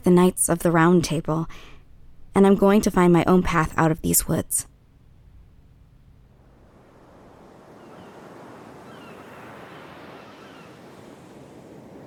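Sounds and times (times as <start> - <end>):
speech: 0.0 - 1.7, 2.4 - 4.7
sea waves: 6.3 - 12.0.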